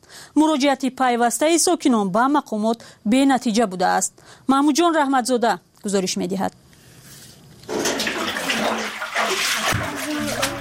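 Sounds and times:
speech: 0.4 - 6.6
water scooped and poured out by hand by children bailing under houses: 7.6 - 10.5.

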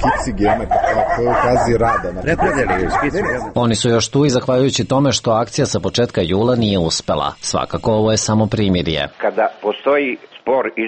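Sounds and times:
stray dogs barking and yipping in a small garden shelter: 0.0 - 3.6
speech: 0.0 - 10.8.

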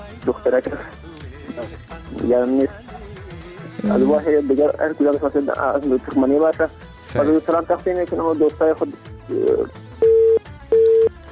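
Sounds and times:
speech: 0.2 - 2.9, 3.8 - 9.8
telephone tone after a caller's line drops during a phone-in: 9.3 - 11.1.

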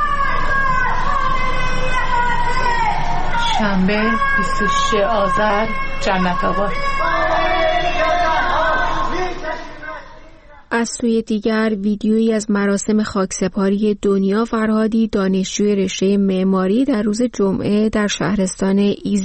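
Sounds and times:
crowd chanting anti-government slogans from homes: 0.0 - 10.7
speech: 3.6 - 8.0, 10.7 - 19.2.

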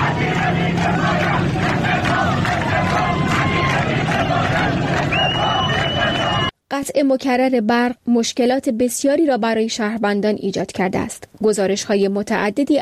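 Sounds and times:
hubbub of voices: 0.0 - 6.4
protesters chanting slogans: 0.0 - 6.5
high whistle-like tones: 5.1 - 6.5
speech: 6.9 - 12.8.

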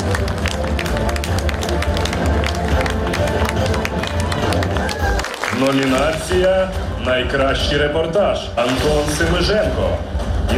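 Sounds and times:
audience applause: 0.0 - 6.7
speech: 5.7 - 10.5.

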